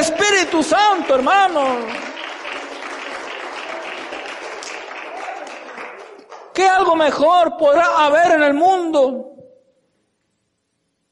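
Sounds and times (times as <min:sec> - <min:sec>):
audience applause: 0:00.0 - 0:06.6
speech: 0:00.5 - 0:02.2, 0:06.6 - 0:09.3.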